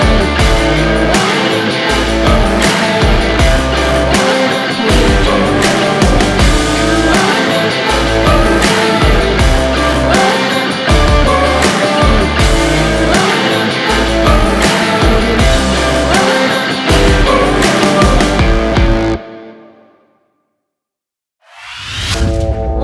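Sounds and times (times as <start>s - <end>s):
western country rock music: 0.0s - 19.6s.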